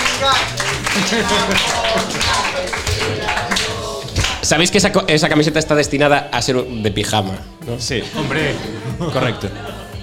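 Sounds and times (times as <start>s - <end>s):
laughter: 0.0s - 4.1s, 8.0s - 9.8s
audience applause at a live show: 0.0s - 4.5s
speech: 0.2s - 3.2s, 4.4s - 9.8s.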